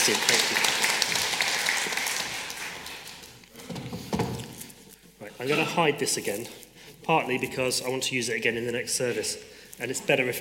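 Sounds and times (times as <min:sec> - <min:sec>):
speech: 0:00.0 - 0:00.7, 0:05.4 - 0:10.3
crowd clapping: 0:00.0 - 0:03.4.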